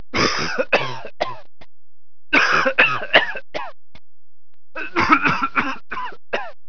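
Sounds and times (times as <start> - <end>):
person coughing: 0.2 - 1.4, 2.4 - 3.7, 4.8 - 6.6.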